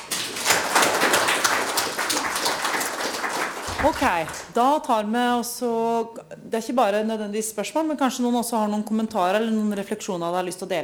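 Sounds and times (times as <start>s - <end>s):
small audience applause: 0.0s - 4.6s
speech: 3.8s - 10.8s.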